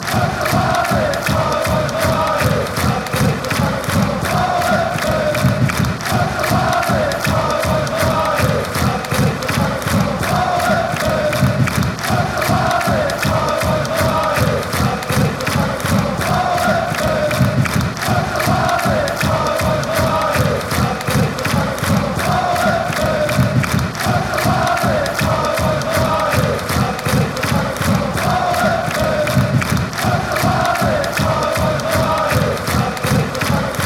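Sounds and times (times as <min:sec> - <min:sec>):
fans chanting: 0:00.0 - 0:33.8.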